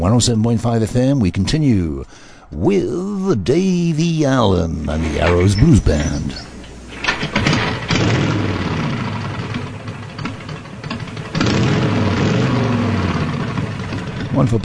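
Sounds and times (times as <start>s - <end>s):
speech: 0.0s - 6.5s, 14.4s - 14.6s
Harley Davidson motorcycle engine starting: 4.9s - 14.6s.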